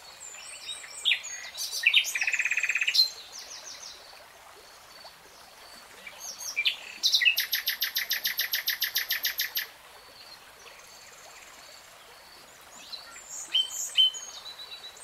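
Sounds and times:
nightingale song: 0.0s - 3.9s, 5.7s - 11.4s, 12.8s - 15.0s.

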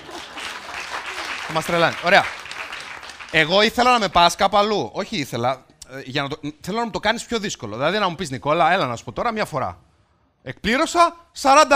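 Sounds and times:
audience applause: 0.0s - 4.1s
speech: 1.5s - 2.4s, 3.3s - 11.7s.

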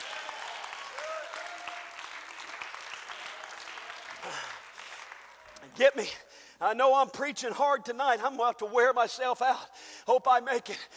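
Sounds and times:
audience clapping hands: 0.0s - 6.0s
speech: 5.6s - 10.9s.

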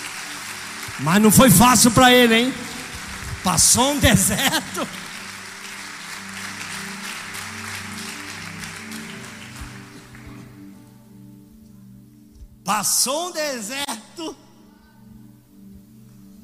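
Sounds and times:
audience applauding: 0.0s - 10.7s
sustained low instrumental tones and chords: 0.9s - 12.7s
speech: 1.0s - 2.7s, 3.4s - 5.0s, 12.7s - 14.4s
laughter: 3.6s - 5.2s.

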